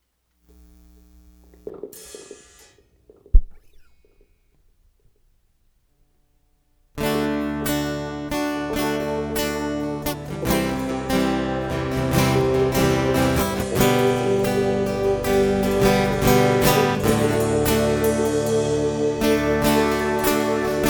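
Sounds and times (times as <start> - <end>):
instrumental music: 7.0 - 20.8.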